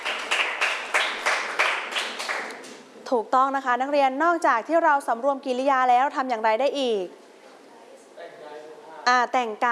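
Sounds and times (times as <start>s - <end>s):
students clapping rhythmically: 0.0s - 2.8s
speech: 3.1s - 7.2s, 9.0s - 9.7s.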